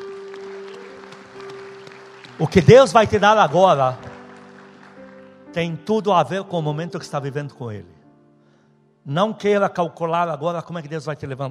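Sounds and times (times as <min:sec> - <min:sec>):
audience applauding: 0:00.0 - 0:06.0
speech: 0:02.4 - 0:04.0, 0:05.5 - 0:08.0, 0:09.0 - 0:11.4.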